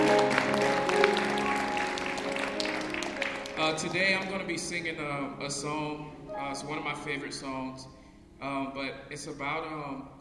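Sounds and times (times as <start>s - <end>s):
audience clapping: 0.0s - 4.6s
speech: 3.8s - 10.1s.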